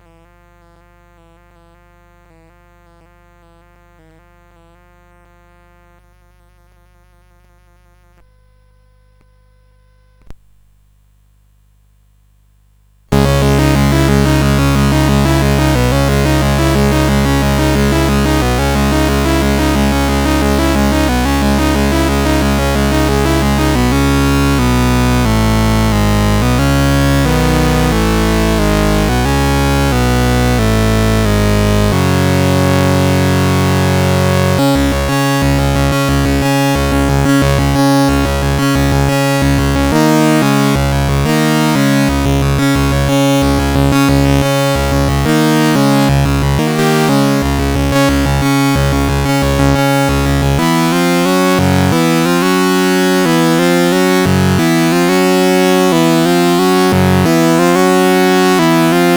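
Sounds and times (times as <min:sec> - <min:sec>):
synthetic metal music on CSG8580: 0:13.2 - 0:59.1.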